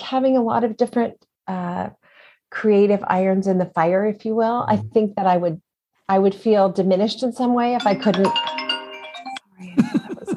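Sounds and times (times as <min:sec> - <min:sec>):
speech: 0:00.1 - 0:08.6
mobile phone electronic ringtone: 0:07.8 - 0:09.6
laughter: 0:09.6 - 0:10.3.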